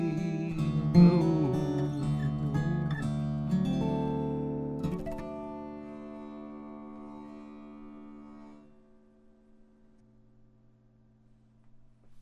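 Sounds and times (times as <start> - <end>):
person singing: 0.0 - 3.0
guitar playing: 0.0 - 10.0.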